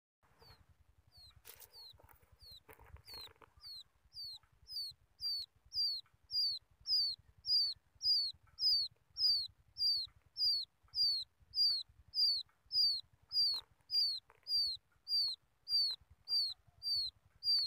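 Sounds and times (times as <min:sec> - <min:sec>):
quail chick peeping: 0:00.3 - 0:17.6
rustling: 0:01.2 - 0:03.9.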